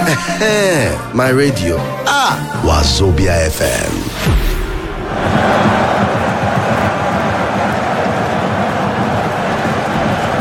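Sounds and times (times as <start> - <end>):
speech: 0.2 - 5.7
stadium crowd roaring at a football match on Wazobia FM radio: 4.8 - 10.3.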